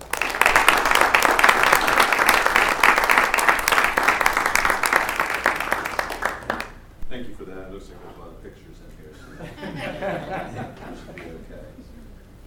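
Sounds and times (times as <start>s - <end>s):
audience applause: 0.0s - 6.8s
laughter: 9.1s - 12.2s.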